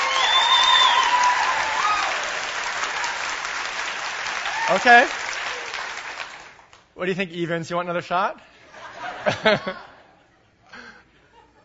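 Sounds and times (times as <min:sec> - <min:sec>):
audience clapping as loud as possible: 0:00.0 - 0:06.9
speech: 0:04.7 - 0:05.2, 0:07.0 - 0:08.5, 0:09.2 - 0:09.9
laughter: 0:08.7 - 0:11.6.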